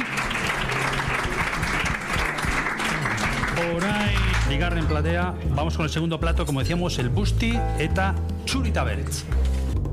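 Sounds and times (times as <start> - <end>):
audience applause for the cooks at a Basque and Spanish culinary event: 0.0 - 4.9
speech: 3.7 - 9.5.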